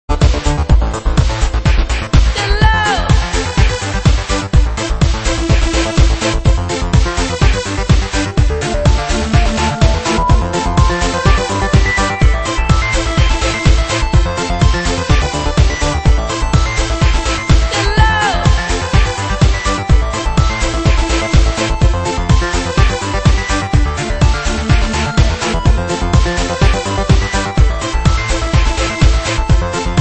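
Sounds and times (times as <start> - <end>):
dreamy trance music: 0.1 - 29.9.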